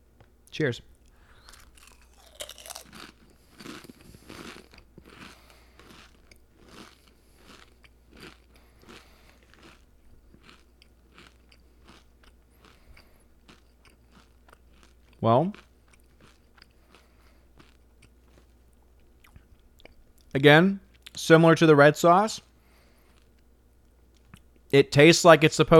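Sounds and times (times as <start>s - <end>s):
speech: 0.6s - 0.9s, 15.2s - 15.6s, 20.4s - 22.5s, 24.7s - 25.7s
crunching ketchup-flavored Doritos tortilla chips: 1.0s - 19.2s.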